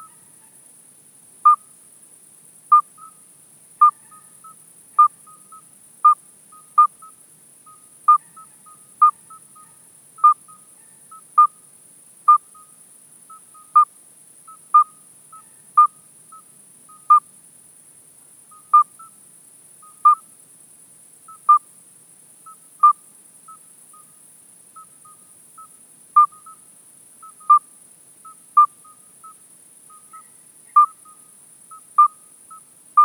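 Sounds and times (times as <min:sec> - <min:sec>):
midwife toad Alytes obstetricans calling: 0:01.4 - 0:01.7, 0:02.7 - 0:03.2, 0:03.8 - 0:11.6, 0:12.3 - 0:17.3, 0:18.5 - 0:19.2, 0:19.8 - 0:20.3, 0:21.2 - 0:21.7, 0:22.4 - 0:24.2, 0:24.8 - 0:33.0.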